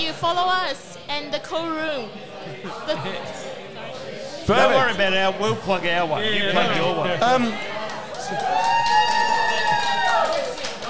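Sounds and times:
speech: 0.1s - 3.5s, 4.5s - 7.7s, 8.3s - 9.0s
audience cheering and whooping: 8.1s - 10.8s.

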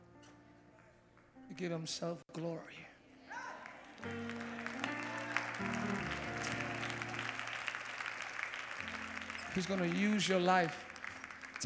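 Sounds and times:
speech: 1.5s - 2.9s, 4.0s - 4.5s, 9.6s - 10.9s
audience clapping: 3.5s - 11.6s
keyboard chords: 4.0s - 11.6s.

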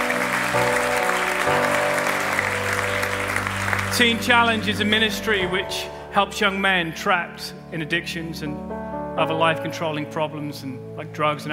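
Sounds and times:
audience clapping: 0.0s - 5.7s
speech: 0.6s - 0.8s, 4.0s - 11.5s.

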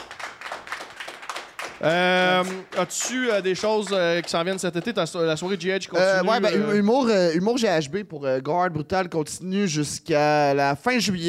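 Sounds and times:
applause: 0.0s - 5.8s
speech: 1.8s - 11.2s.

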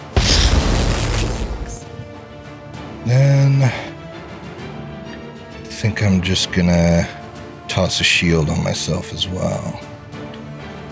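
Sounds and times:
lightning bolt strike sound effect: 0.0s - 1.9s
speech: 5.9s - 9.9s.

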